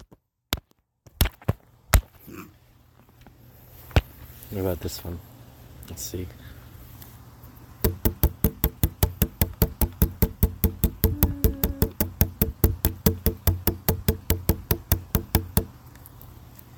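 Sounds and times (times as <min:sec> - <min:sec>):
speech: 0:04.5 - 0:05.3, 0:05.9 - 0:06.5
drumming on a plastic water bottle: 0:07.8 - 0:15.7.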